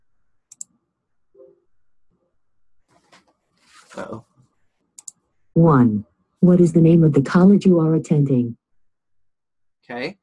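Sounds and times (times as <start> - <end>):
mouse clicks on an on-screen play button: 0.5 - 0.8, 5.0 - 5.2
speech: 4.0 - 4.3, 5.6 - 8.6, 9.9 - 10.2.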